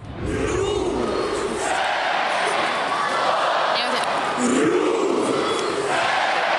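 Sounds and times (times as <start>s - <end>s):
football fans chanting team name: 0.0s - 6.5s
dense roar of voices: 0.2s - 6.0s.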